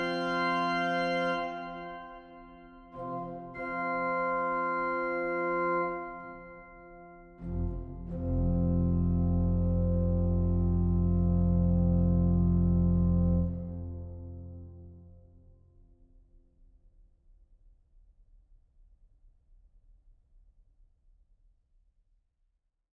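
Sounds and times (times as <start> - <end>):
organ gavotte in F minor: 0.0 - 15.2.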